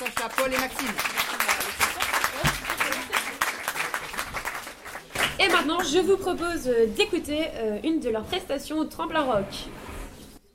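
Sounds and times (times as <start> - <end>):
audience applause: 0.0 - 5.6
speech: 0.2 - 1.2, 5.6 - 9.8.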